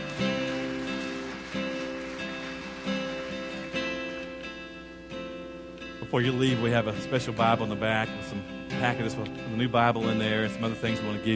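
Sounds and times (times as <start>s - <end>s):
audience applause: 0.0s - 4.4s
speech: 6.1s - 11.3s.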